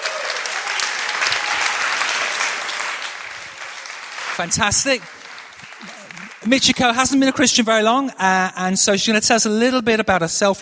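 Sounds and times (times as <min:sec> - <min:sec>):
warm round of applause: 0:00.0 - 0:07.4
speech: 0:04.4 - 0:05.2, 0:06.4 - 0:10.6.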